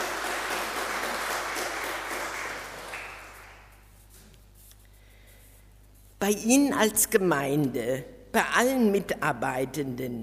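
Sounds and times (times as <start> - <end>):
audience applause: 0.0 - 3.7
speech: 6.2 - 10.2.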